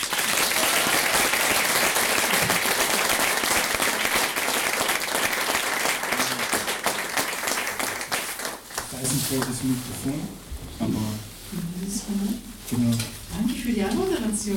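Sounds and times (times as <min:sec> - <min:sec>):
audience applause: 0:00.0 - 0:09.6
speech: 0:09.3 - 0:14.5.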